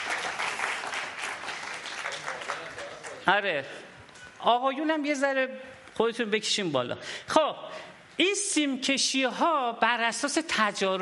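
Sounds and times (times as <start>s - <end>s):
audience clapping in honour of the women: 0.0s - 3.3s
speech: 3.3s - 11.0s.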